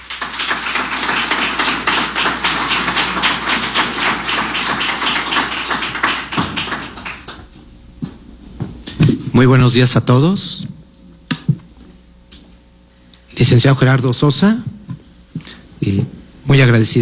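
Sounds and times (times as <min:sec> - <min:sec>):
audience applause: 0:00.0 - 0:07.6
speech: 0:09.4 - 0:10.7, 0:13.4 - 0:14.8, 0:15.9 - 0:16.9.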